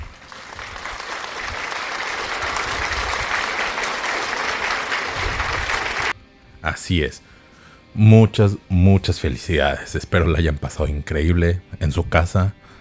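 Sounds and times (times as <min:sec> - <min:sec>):
crowd applauding: 0:00.0 - 0:06.2
speech: 0:06.6 - 0:07.3, 0:08.0 - 0:12.7.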